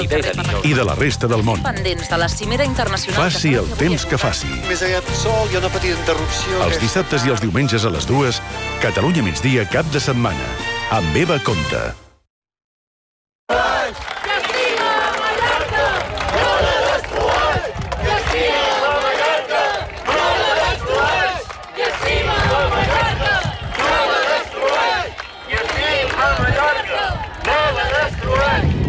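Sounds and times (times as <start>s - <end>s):
speech: 0.0s - 12.0s
shouts of 10,000 people in a human chain protest: 13.5s - 28.8s.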